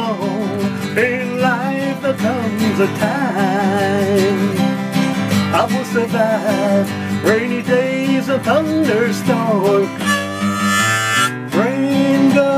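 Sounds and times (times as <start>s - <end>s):
guitar: 0.0s - 12.5s
harmonica: 9.8s - 11.6s.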